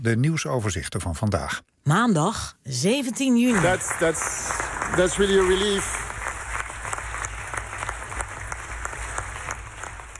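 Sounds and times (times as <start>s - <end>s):
speech: 0.0s - 6.0s
audience clapping in a hall in Brussels after the nature restoration law vote: 3.5s - 10.1s.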